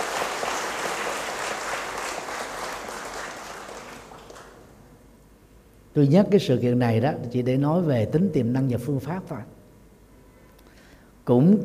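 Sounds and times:
audience applause: 0.0s - 4.6s
speech: 6.0s - 9.6s, 11.3s - 11.6s.

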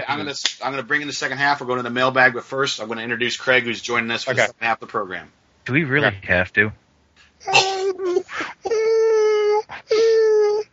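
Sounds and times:
speech: 0.2s - 6.8s, 7.4s - 8.6s
dog whimpering near a microphone: 7.5s - 10.7s.

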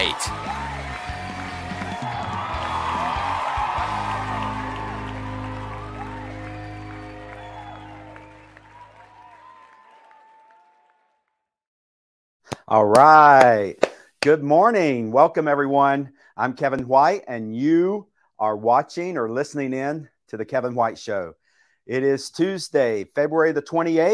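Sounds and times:
speech: 0.0s - 0.7s, 12.7s - 24.1s
audience applause: 0.0s - 11.2s.

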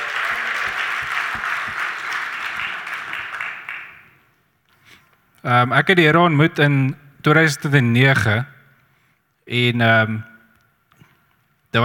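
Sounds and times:
audience clapping hands for the band: 0.0s - 4.3s
speech: 5.4s - 8.5s, 9.5s - 10.3s.

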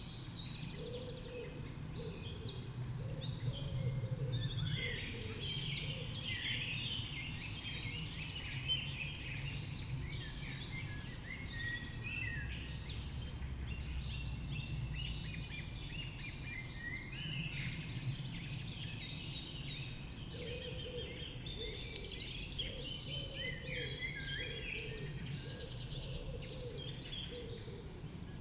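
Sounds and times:
dawn chorus birdsong: 0.0s - 28.3s.

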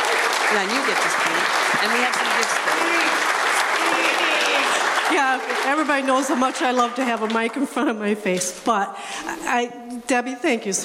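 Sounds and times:
crowd applauding: 0.0s - 8.0s
laughter: 0.1s - 7.2s
speech: 0.5s - 10.8s.

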